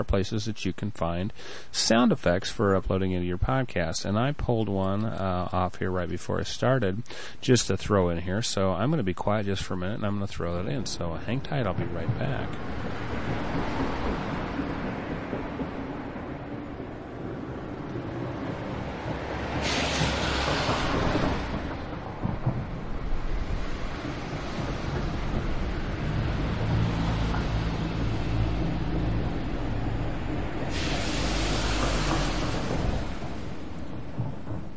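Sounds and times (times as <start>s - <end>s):
speech: 0.0s - 13.8s
low rumble: 9.0s - 34.7s
steady rain falling: 10.3s - 34.7s.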